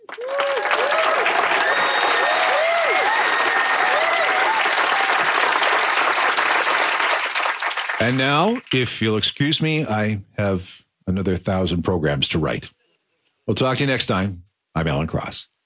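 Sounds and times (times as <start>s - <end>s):
audience applause: 0.0s - 8.9s
speech: 8.0s - 12.8s, 13.5s - 15.5s.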